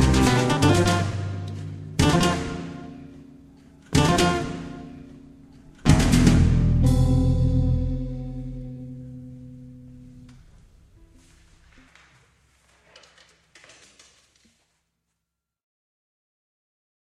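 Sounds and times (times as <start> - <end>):
trio playing simple etudes: 0.0 - 10.3.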